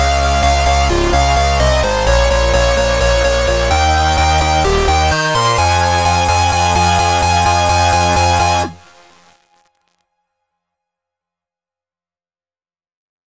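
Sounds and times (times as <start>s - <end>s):
bass: 0.0s - 8.8s
synthesizers: 0.0s - 9.6s.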